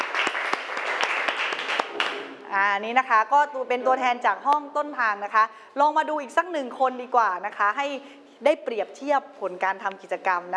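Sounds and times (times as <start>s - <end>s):
applause: 0.0s - 2.4s
speech: 2.5s - 10.5s.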